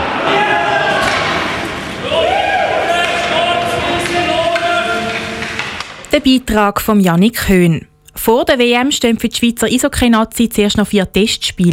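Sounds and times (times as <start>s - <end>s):
players cheering at training: 0.0s - 5.9s
speech: 6.2s - 11.7s.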